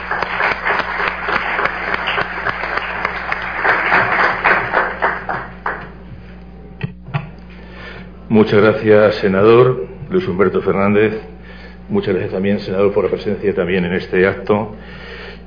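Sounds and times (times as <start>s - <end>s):
audience applause: 0.0s - 6.0s
speech: 8.4s - 11.3s, 11.9s - 15.1s.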